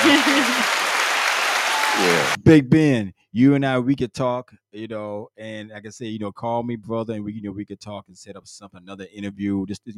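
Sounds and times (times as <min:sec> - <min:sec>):
applause: 0:00.0 - 0:02.4
speech: 0:02.0 - 0:09.9.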